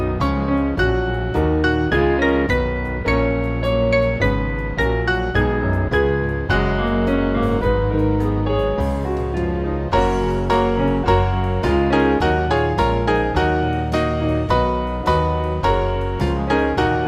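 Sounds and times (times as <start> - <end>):
piano hymn tune: 0.0 - 17.0.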